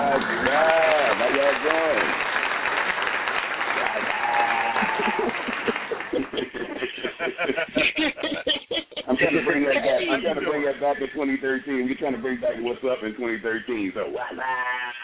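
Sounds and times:
laughter: 0.0s - 2.0s, 3.9s - 15.0s
audience applause: 0.0s - 7.0s
whoops and cheers: 3.8s - 5.4s
speech: 9.6s - 14.9s.

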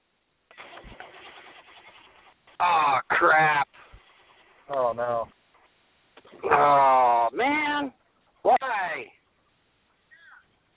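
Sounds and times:
diesel truck engine cranking in cold weather: 0.5s - 4.4s
speech: 2.6s - 3.7s, 4.7s - 5.4s, 6.5s - 8.0s.

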